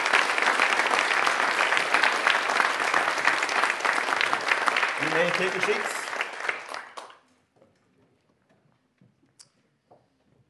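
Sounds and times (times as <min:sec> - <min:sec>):
church congregation applauding to welcome new members: 0:00.0 - 0:07.2
speech: 0:05.2 - 0:06.0.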